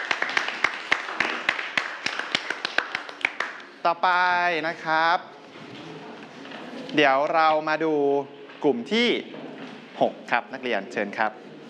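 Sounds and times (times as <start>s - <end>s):
students applauding in classroom: 0.0s - 3.8s
speech: 3.8s - 5.3s, 6.9s - 9.4s, 10.0s - 11.4s.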